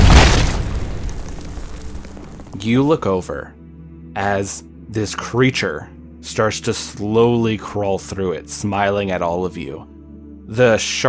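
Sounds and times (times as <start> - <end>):
door exploding: 0.0 - 2.6
speech: 2.6 - 3.6, 4.2 - 9.9, 10.5 - 11.0.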